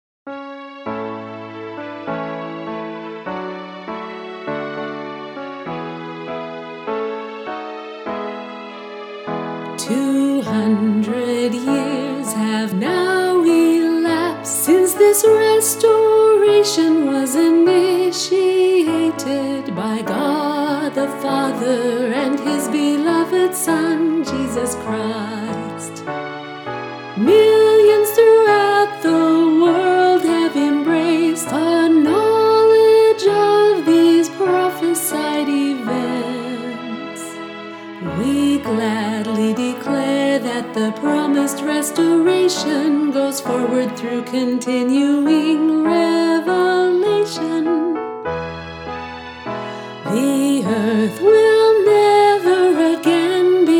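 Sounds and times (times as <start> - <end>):
vocals: 9.6 - 48.4, 49.5 - 53.7.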